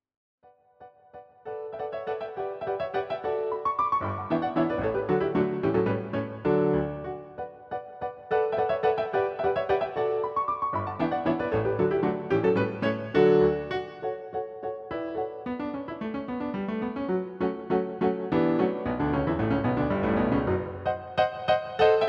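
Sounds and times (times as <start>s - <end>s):
minuet on piano roll: 0.8s - 22.0s.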